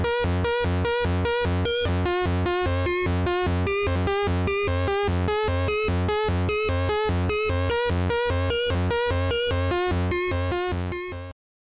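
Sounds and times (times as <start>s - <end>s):
dry Arp 2600 polyphonic 90s synthesizer patch: 0.0s - 11.2s.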